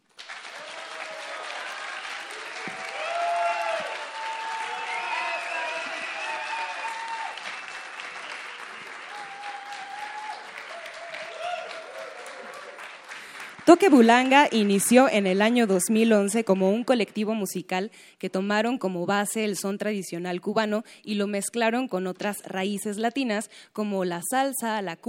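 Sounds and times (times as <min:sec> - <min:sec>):
audience applause for a live band: 0:00.0 - 0:15.1
speech: 0:13.7 - 0:25.0.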